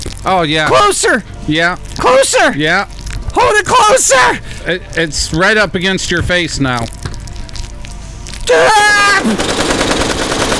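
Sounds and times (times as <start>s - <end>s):
speech: 0.2s - 6.9s
machine gun fire: 9.2s - 10.5s.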